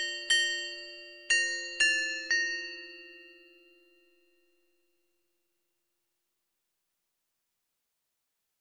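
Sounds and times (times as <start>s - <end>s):
school song melody on glockenspiel: 0.0s - 4.6s.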